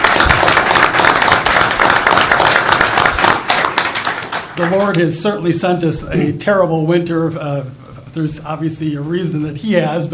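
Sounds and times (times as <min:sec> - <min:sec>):
audience applause: 0:00.0 - 0:05.0
speech: 0:04.6 - 0:10.1.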